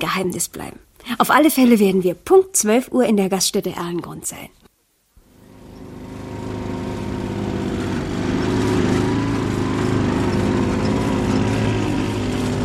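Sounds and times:
speech: 0.0s - 4.7s
small two-stroke moped engines droning: 5.3s - 12.6s.

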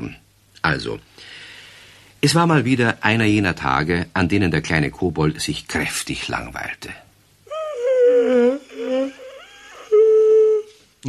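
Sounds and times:
speech: 0.1s - 1.4s, 2.2s - 7.0s, 8.3s - 8.6s
yawn: 7.5s - 10.7s.

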